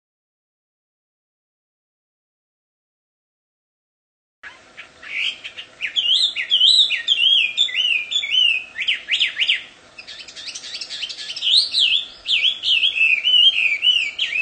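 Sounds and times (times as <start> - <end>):
wild Chinese hwamei singing in its natural habitat: 4.4 - 14.3.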